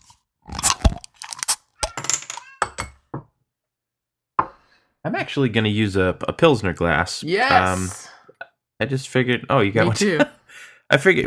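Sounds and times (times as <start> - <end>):
beer can cracked open: 0.5 - 2.2
speech: 5.0 - 8.1, 8.8 - 11.2.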